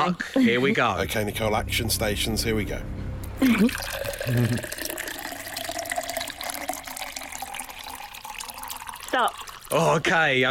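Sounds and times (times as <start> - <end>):
speech: 0.0 - 4.9, 9.2 - 10.4
water pouring into a pint glass: 3.4 - 10.4.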